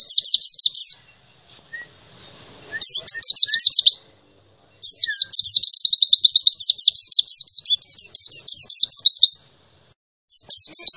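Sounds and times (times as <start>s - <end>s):
white-eye song of very high rapid chirped notes: 0.0s - 4.1s, 4.8s - 10.9s.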